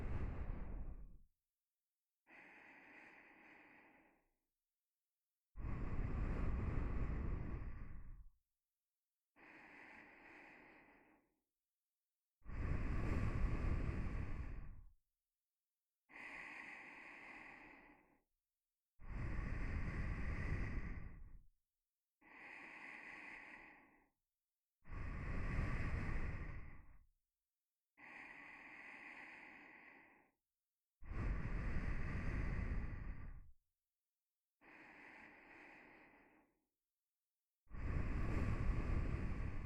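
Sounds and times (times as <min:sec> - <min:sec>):
nose breathing while lying beside: 0:00.0 - 0:01.0, 0:02.3 - 0:04.2, 0:05.6 - 0:08.2, 0:09.4 - 0:11.3, 0:12.5 - 0:14.8, 0:16.1 - 0:18.2, 0:19.0 - 0:21.4, 0:22.2 - 0:24.1, 0:24.9 - 0:26.9, 0:28.0 - 0:30.4, 0:31.1 - 0:33.5, 0:34.6 - 0:36.6, 0:37.7 - 0:39.6.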